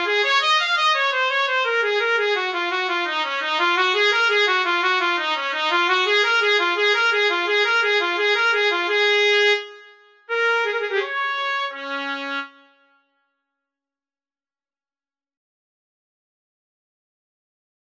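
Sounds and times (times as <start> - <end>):
etude: 0.0 - 12.6.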